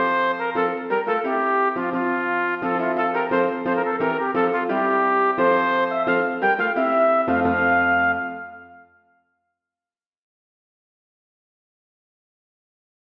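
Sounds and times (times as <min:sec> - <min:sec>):
piano: 0:00.0 - 0:09.1
trumpet: 0:00.0 - 0:09.2.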